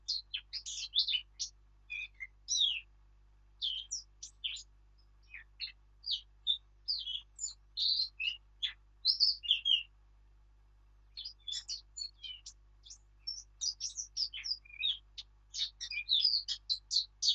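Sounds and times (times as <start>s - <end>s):
Eurasian blackcap Sylvia atricapilla warbling song: 0.0s - 2.9s, 3.6s - 9.9s, 11.1s - 17.3s.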